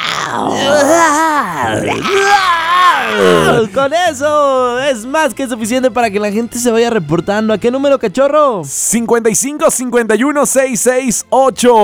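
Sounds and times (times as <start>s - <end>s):
voice imitating a dinosaur growling roar: 0.0s - 3.8s
speech: 0.3s - 1.0s, 1.7s - 2.5s, 3.2s - 11.8s.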